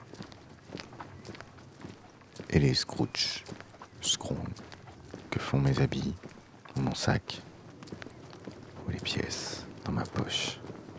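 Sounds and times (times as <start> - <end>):
footsteps while walking: 0.0 - 10.9
speech: 2.5 - 4.7, 5.3 - 7.5, 9.0 - 10.6.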